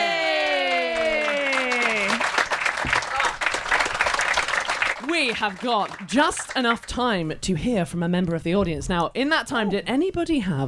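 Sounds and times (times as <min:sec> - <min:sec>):
audience cheering: 0:00.0 - 0:05.4
audience clapping: 0:00.2 - 0:07.2
speech: 0:05.2 - 0:10.6.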